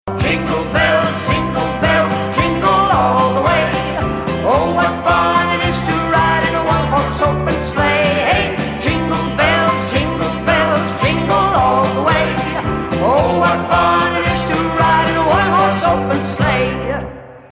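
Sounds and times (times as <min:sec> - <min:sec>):
Christmas song: 0:00.1 - 0:17.5.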